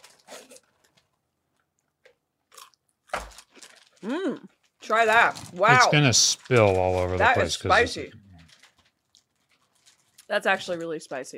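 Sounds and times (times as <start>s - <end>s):
crunching of dried jalapeno pieces: 2.6s - 10.9s
speech: 4.0s - 8.2s, 10.3s - 11.3s.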